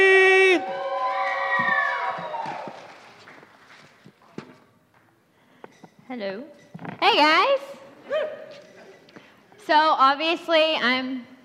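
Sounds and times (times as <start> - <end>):
audience cheering and shouting to welcome a guest speaker: 0.0 - 3.1
speech: 6.2 - 7.7, 9.7 - 11.3.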